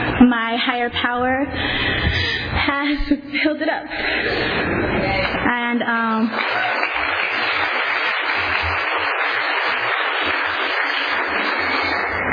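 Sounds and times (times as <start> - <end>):
speech: 0.2 - 6.6
audience clapping at a live show: 6.3 - 12.3.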